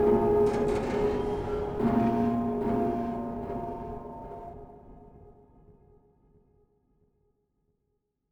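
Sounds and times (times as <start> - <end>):
quest ambient music: 0.0 - 4.9.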